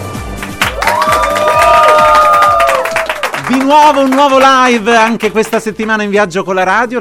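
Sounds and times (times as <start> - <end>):
audience cheering: 0.3 - 4.8
audience applause: 0.3 - 5.9
speech: 3.7 - 6.9.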